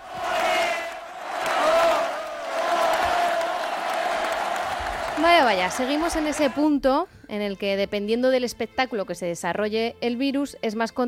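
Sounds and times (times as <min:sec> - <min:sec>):
crowd applause and cheering: 0:00.0 - 0:06.7
speech: 0:05.2 - 0:11.0.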